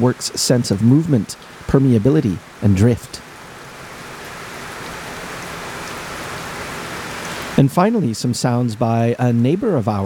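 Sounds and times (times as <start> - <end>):
speech: 0.0 - 3.3, 7.6 - 10.0
trickling, flowing water: 0.0 - 7.9.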